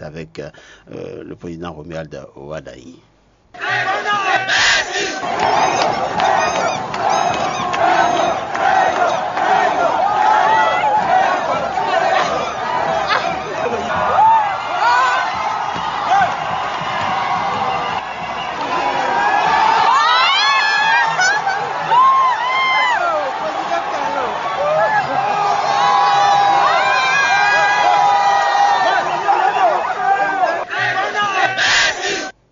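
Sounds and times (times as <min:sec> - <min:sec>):
speech: 0:00.1 - 0:07.5
laughter: 0:03.6 - 0:15.1, 0:20.2 - 0:25.5
chants: 0:03.6 - 0:32.3
large crowd cheering and shouting: 0:03.6 - 0:32.3
whistles: 0:04.5 - 0:09.2, 0:16.6 - 0:18.9.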